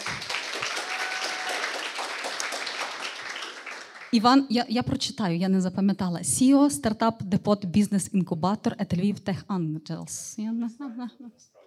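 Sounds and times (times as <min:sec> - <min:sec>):
audience applause: 0:00.0 - 0:04.1
speech: 0:04.1 - 0:11.6.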